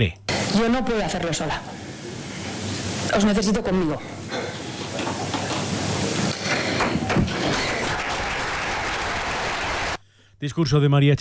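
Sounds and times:
speech: 0.0 - 1.8, 3.1 - 4.2, 10.4 - 11.1
audience applauding a political speech: 4.7 - 10.0.

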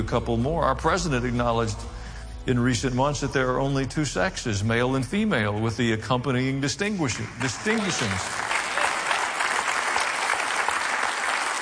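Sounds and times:
speech: 0.0 - 8.4
audience applause: 7.2 - 11.6.

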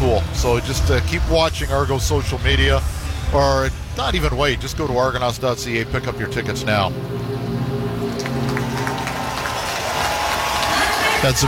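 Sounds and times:
speech: 0.1 - 7.2, 11.2 - 11.4
Argo faithful stadium crowd applause: 7.4 - 11.4.

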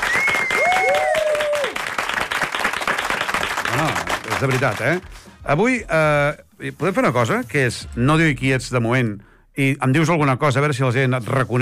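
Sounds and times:
studio audience applause: 0.0 - 5.1
speech: 4.4 - 11.6.

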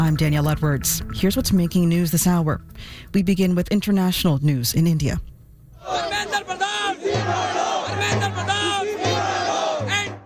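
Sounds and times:
speech: 0.0 - 8.9
large street protest crowd chanting: 5.8 - 10.2.

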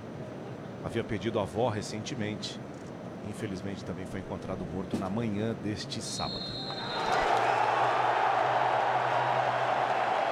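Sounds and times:
speech: 0.8 - 7.2
stadium crowd applauding at Hard Rock Stadium: 6.3 - 10.3.

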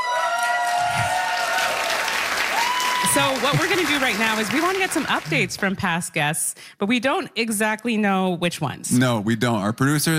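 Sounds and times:
live studio audience cheering and applauding: 0.0 - 5.8
speech: 3.2 - 10.1.

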